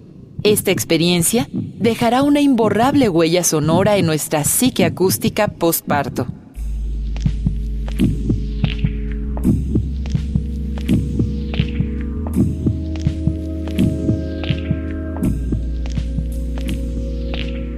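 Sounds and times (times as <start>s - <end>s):
heartbeat thumping: 0.3s - 17.7s
speech: 0.4s - 6.4s
deep droning hum: 6.3s - 17.7s.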